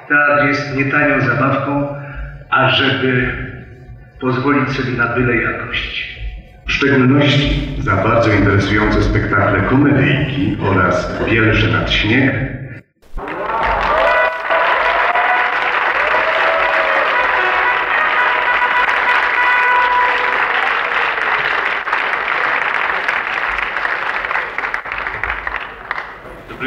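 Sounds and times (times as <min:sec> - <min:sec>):
speech: 0:00.1 - 0:02.0, 0:02.6 - 0:03.5, 0:04.2 - 0:12.6
theatre audience applause: 0:13.0 - 0:26.6
voices and tonal cheers: 0:13.1 - 0:26.6.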